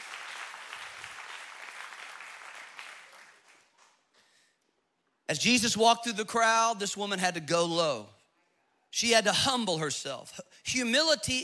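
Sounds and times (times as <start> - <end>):
audience clapping: 0.0 - 4.3
speech: 5.3 - 8.2, 8.9 - 11.4.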